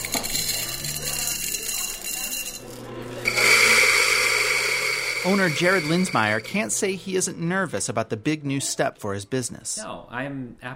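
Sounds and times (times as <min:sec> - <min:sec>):
coffee grinder grinding beans: 0:00.0 - 0:06.9
speech: 0:05.2 - 0:10.7.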